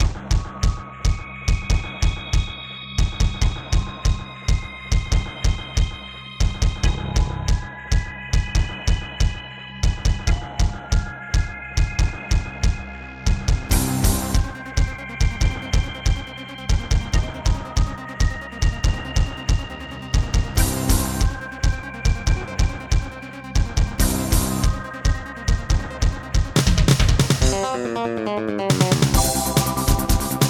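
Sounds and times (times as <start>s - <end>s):
Casio LD-80 electronic keyboard: 0.0s - 30.4s.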